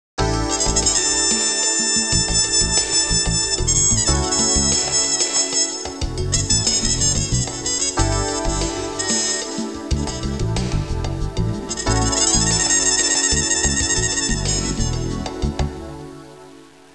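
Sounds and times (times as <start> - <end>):
jazz music ringtone: 0.2 - 16.4.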